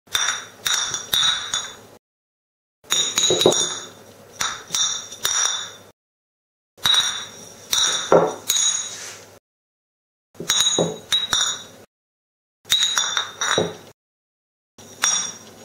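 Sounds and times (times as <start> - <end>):
empty beer bottles: 0.1 - 1.9, 2.9 - 5.9, 6.8 - 9.0, 10.4 - 11.8, 12.7 - 14.0, 14.8 - 15.6.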